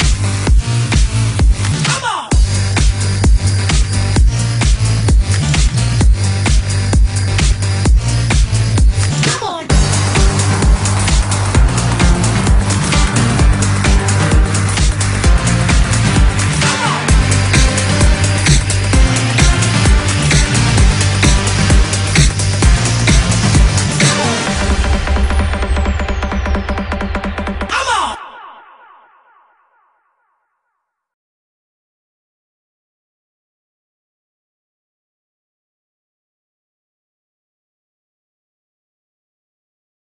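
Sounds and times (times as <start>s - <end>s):
instrumental with nice bass: 0.0s - 27.7s.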